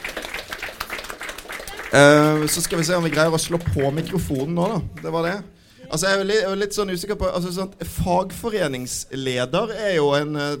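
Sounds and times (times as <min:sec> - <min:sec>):
audience applause: 0:00.0 - 0:05.4
speech: 0:01.9 - 0:10.5.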